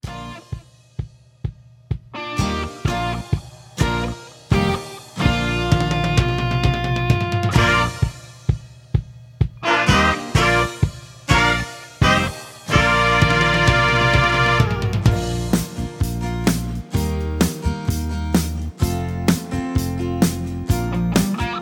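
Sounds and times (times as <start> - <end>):
instrumental music: 0.0 - 21.6.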